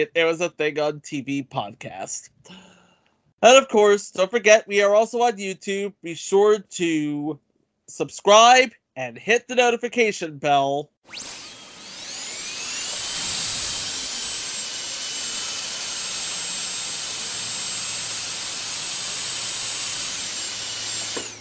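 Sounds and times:
speech: 0.0s - 2.7s, 3.4s - 11.5s
dentist's drill whirring: 11.1s - 21.3s.

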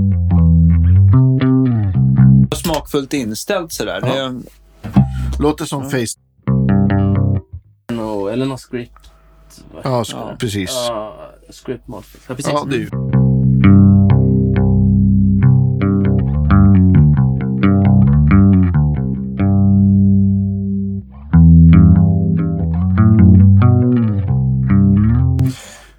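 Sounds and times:
chorus audio effect: 0.0s - 3.1s, 3.9s - 7.7s, 12.7s - 25.6s
speech: 2.5s - 4.6s, 5.4s - 6.2s, 8.4s - 13.9s.

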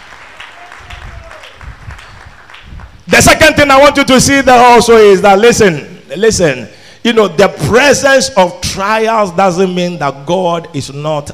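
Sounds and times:
audience clapping hands: 0.0s - 3.0s
speech: 3.2s - 11.3s.

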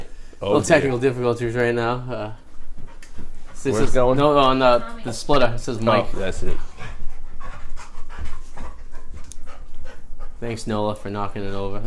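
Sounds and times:
speech: 0.4s - 2.4s, 3.6s - 6.7s, 10.4s - 11.8s
excited dog panting: 2.4s - 11.6s.

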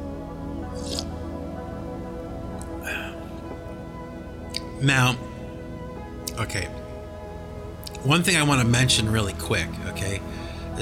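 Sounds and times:
sipping hot coffee: 0.7s - 1.2s
speech: 4.8s - 5.3s, 6.4s - 6.8s, 8.0s - 10.8s.

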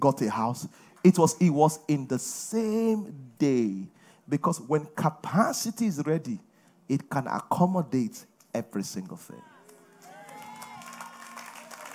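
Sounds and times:
speech: 0.0s - 9.5s
audience clapping and cheering: 9.5s - 11.9s.

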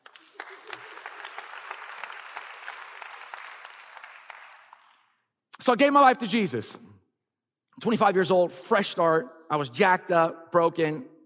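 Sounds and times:
audience clapping: 0.0s - 5.2s
speech: 5.6s - 6.9s, 7.8s - 11.1s.

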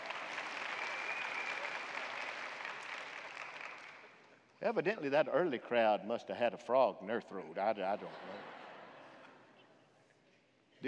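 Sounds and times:
audience applause: 0.0s - 4.2s
speech: 4.6s - 8.6s
laughter: 7.3s - 9.5s.

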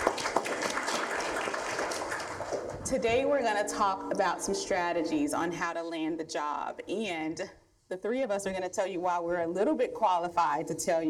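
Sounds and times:
audience applause: 0.0s - 2.8s
speech: 2.9s - 11.0s.

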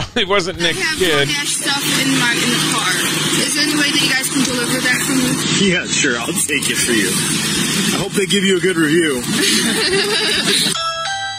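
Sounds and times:
laughter: 0.0s - 1.4s, 8.6s - 10.8s
speech: 0.2s - 10.9s
Ring doorbell ringing: 10.7s - 11.3s.

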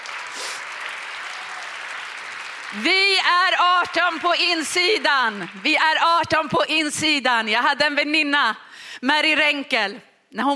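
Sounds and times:
audience applause: 0.0s - 6.4s
speech: 2.7s - 10.5s.

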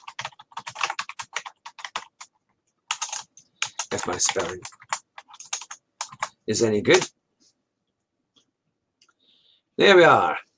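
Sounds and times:
rapid typing on a computer keyboard: 0.0s - 7.1s
speech: 3.9s - 4.8s, 6.5s - 7.2s, 9.8s - 10.4s.

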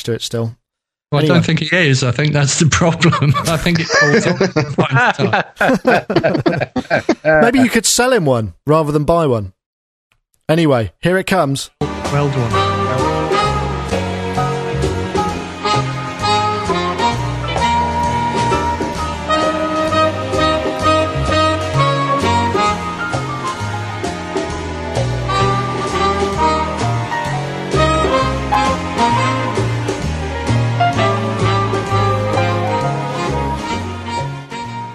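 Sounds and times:
speech: 0.0s - 9.6s, 10.5s - 13.3s
laughter: 2.7s - 7.8s
Muzak-style instrumental background music: 11.8s - 34.9s.

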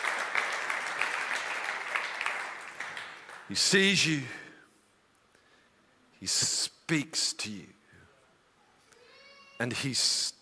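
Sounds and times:
audience clapping: 0.0s - 4.0s
speech: 3.5s - 4.4s, 6.2s - 7.8s, 9.6s - 10.4s.

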